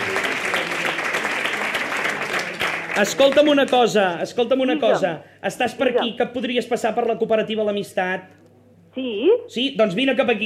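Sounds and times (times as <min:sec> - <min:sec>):
loud applause: 0:00.0 - 0:03.9
speech: 0:03.0 - 0:08.4, 0:09.0 - 0:10.4.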